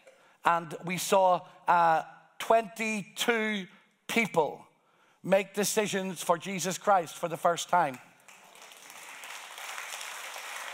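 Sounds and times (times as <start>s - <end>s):
speech: 0.4s - 8.1s
church audience applause: 8.3s - 10.7s.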